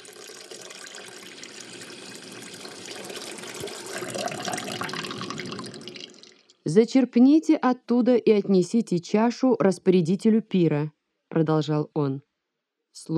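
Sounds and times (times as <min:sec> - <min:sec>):
water pouring into large vessels: 0:00.0 - 0:06.6
speech: 0:06.7 - 0:12.3, 0:13.0 - 0:13.1.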